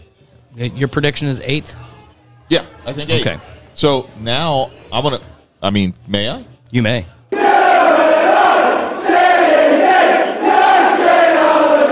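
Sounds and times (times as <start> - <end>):
speech: 0.6 - 1.9, 2.5 - 7.2
overlapping shouting voices: 7.3 - 11.9
rowdy crowd cheering and roaring: 7.3 - 11.9.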